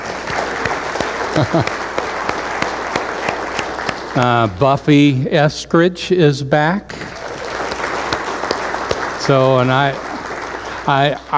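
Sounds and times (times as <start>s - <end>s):
audience applause: 0.0s - 4.8s, 6.9s - 11.3s
laughter: 0.8s - 4.8s
speech: 1.4s - 1.9s, 4.2s - 7.0s, 9.3s - 10.1s, 10.9s - 11.3s.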